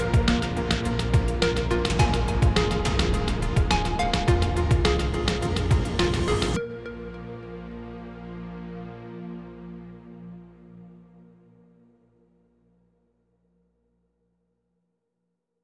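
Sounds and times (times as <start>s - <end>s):
suspense music at 105 BPM: 0.0s - 9.6s.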